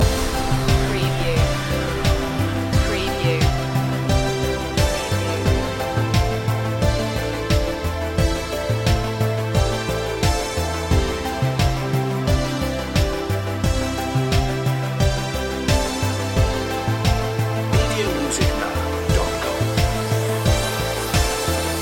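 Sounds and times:
music loop: 0:00.0 - 0:21.8.

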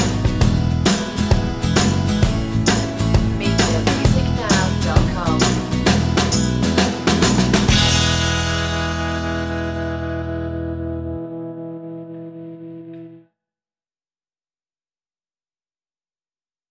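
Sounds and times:
sixties flower power music: 0:00.0 - 0:13.1.

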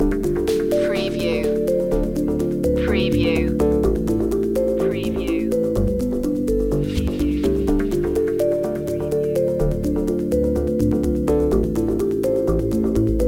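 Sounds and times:
chill beats loop: 0:00.0 - 0:13.2.

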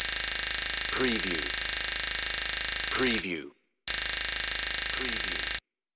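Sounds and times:
data transmission beeps: 0:00.1 - 0:03.3, 0:03.9 - 0:05.6.

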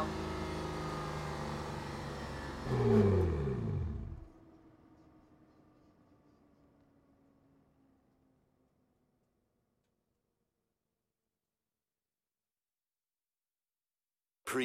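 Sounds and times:
Aston Martin DB9 engine starting: 0:00.0 - 0:04.3.

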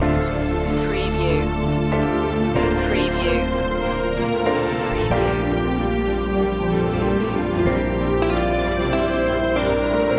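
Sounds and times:
fantasy waltz loop: 0:00.0 - 0:10.1.

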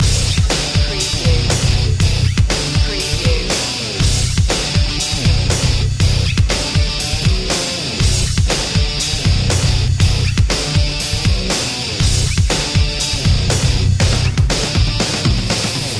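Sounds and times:
music loop: 0:00.0 - 0:15.9.

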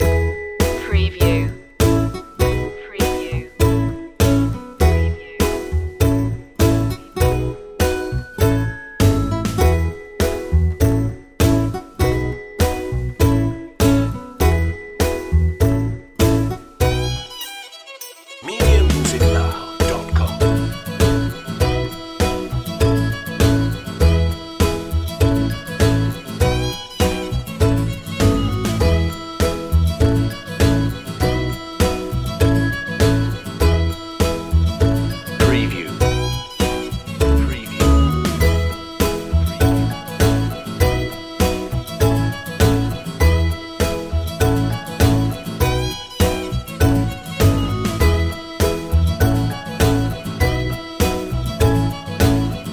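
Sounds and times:
long looping country music: 0:00.0 - 0:17.5, 0:18.3 - 0:52.7.

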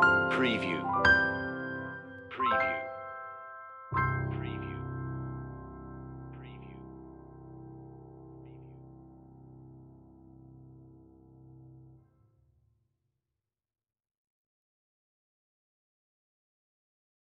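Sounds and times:
solo piano: 0:00.0 - 0:12.0.

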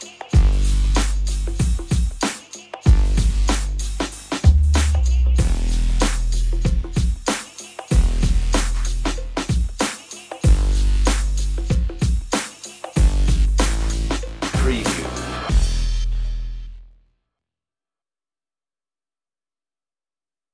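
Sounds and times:
drums: 0:00.0 - 0:16.7
bass: 0:00.2 - 0:02.2, 0:02.9 - 0:07.3, 0:07.9 - 0:09.7, 0:10.4 - 0:12.2, 0:13.0 - 0:17.1.

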